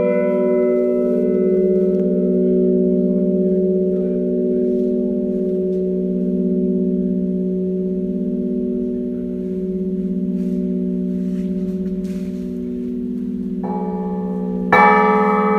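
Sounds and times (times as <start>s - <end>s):
three-bell chord chiming: 0.0s - 15.5s.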